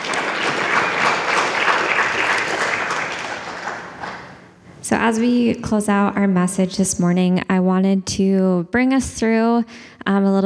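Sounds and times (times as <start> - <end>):
crowd applause: 0.0 - 4.8
speech: 4.9 - 10.4.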